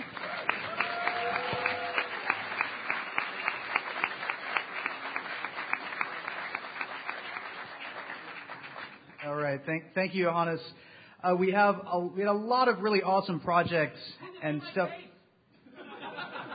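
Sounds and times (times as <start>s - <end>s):
audience applause: 0.0s - 9.3s
speech: 9.7s - 15.0s
laughter: 15.7s - 16.5s.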